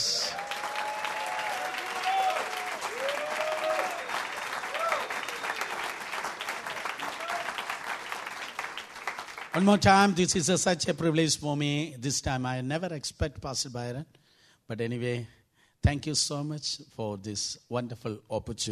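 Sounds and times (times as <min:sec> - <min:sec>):
audience clapping: 0:00.0 - 0:10.1
speech: 0:09.6 - 0:18.6.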